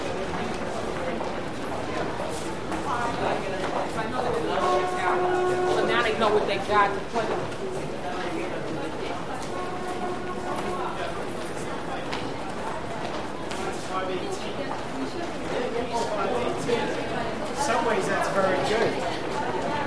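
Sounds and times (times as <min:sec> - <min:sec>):
large crowd of pedestrians in a lobby: 0:00.0 - 0:19.8.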